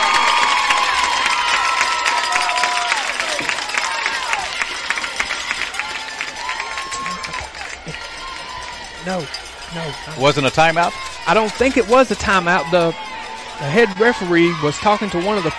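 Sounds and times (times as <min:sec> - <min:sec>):
clapping: 0:00.0 - 0:09.5
large stadium crowd cheering: 0:00.0 - 0:15.5
speech: 0:09.1 - 0:15.5.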